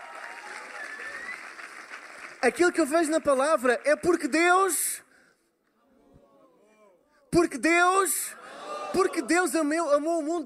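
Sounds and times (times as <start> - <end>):
round of applause from a crowd: 0.0 - 3.2
speech: 2.4 - 5.0, 7.4 - 10.4.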